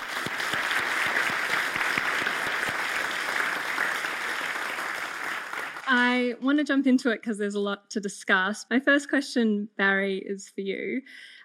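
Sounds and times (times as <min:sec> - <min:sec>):
audience applause welcoming a panel at the Antidote 2022 festival: 0:00.0 - 0:06.1
speech: 0:05.9 - 0:11.4.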